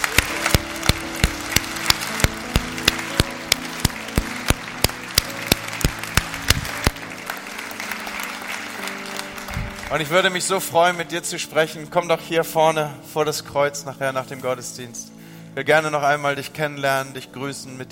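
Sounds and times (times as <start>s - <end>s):
strong applause from audience: 0.0s - 10.1s
speech: 9.9s - 17.9s.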